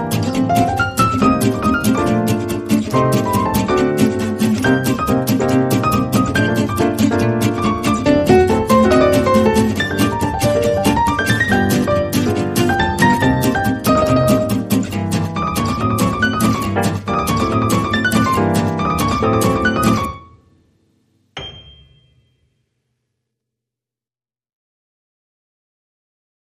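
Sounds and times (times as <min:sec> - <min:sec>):
guitars: 0:00.0 - 0:20.3
piano: 0:00.0 - 0:22.5.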